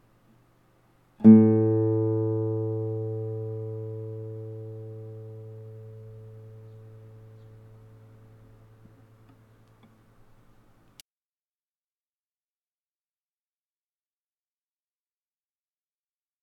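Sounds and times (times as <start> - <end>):
Spanish guitar fifth string A note for tuning: 1.2 - 9.5.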